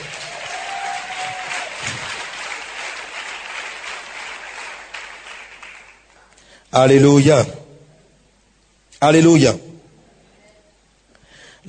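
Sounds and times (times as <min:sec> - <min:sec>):
congregation applauding at a French-language church service: 0:00.0 - 0:06.4
speech: 0:06.7 - 0:07.6, 0:09.0 - 0:09.7.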